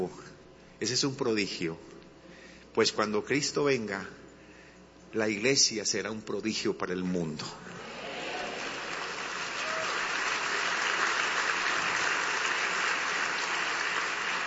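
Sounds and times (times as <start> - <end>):
speech: 0.0 - 1.9, 2.8 - 4.2, 5.1 - 7.9
audience applause: 7.8 - 14.4.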